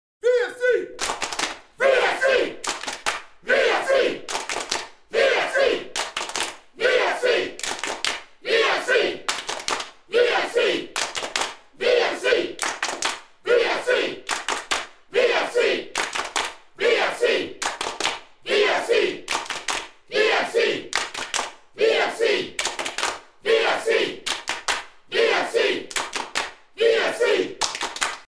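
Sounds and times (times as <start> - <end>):
chanting: 0.2 - 28.2.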